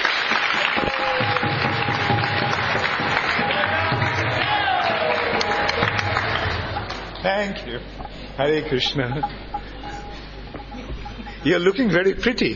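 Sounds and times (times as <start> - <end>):
group clapping hands: 0.0 - 7.3
speech: 7.4 - 9.4, 11.4 - 12.5.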